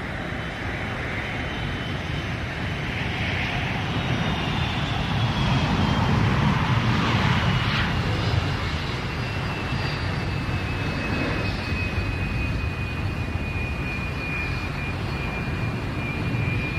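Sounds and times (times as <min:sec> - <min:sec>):
airplane: 0:00.0 - 0:16.7.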